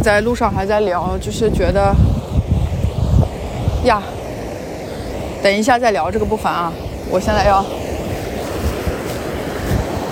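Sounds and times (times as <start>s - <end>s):
speech: 0.0s - 2.4s, 3.8s - 4.2s, 5.4s - 7.8s
small river water flowing: 2.7s - 10.0s.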